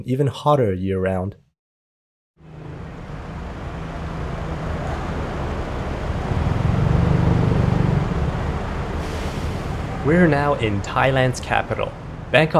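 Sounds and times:
speech: 0:00.0 - 0:01.4, 0:10.0 - 0:12.5
busy city traffic by an elevated train station: 0:02.4 - 0:12.5
engine hum of passing vehicles: 0:02.4 - 0:12.5.

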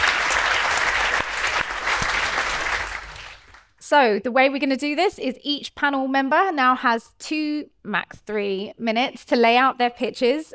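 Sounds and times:
audience clapping to welcome a debate panel: 0:00.0 - 0:03.8
speech: 0:03.9 - 0:10.5.

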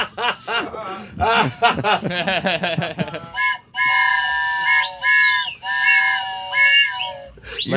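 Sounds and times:
person chuckling: 0:00.0 - 0:03.3
voice imitating a train whistle: 0:03.3 - 0:07.7.

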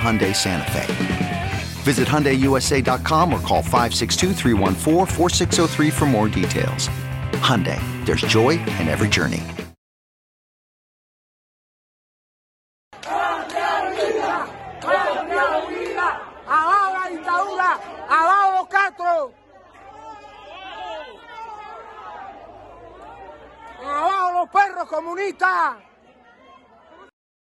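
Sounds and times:
street protest crowd chanting and shouting: 0:00.0 - 0:07.1, 0:07.8 - 0:09.1, 0:13.0 - 0:27.1
speech: 0:00.0 - 0:09.6, 0:24.4 - 0:25.9
murmur of babble: 0:13.6 - 0:24.1, 0:25.4 - 0:27.1.

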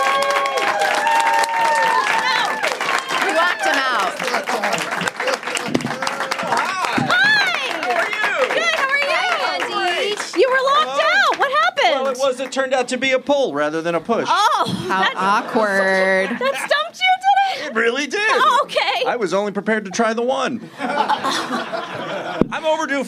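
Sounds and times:
cheers and whoops: 0:00.0 - 0:10.2
audience applause: 0:00.0 - 0:12.8
laughter: 0:03.2 - 0:11.6, 0:14.3 - 0:23.0
speech: 0:12.5 - 0:16.7, 0:17.8 - 0:23.0.

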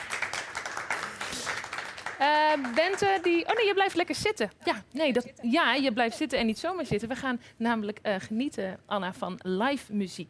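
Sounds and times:
crowd clapping: 0:00.0 - 0:03.7
speech: 0:02.2 - 0:10.2.

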